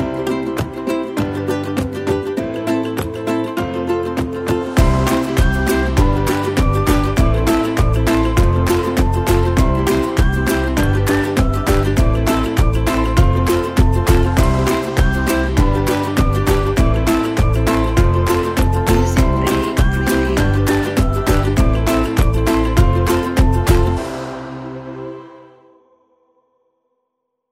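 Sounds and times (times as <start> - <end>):
happy acoustic ukulele music for kids: 0.0 - 25.4.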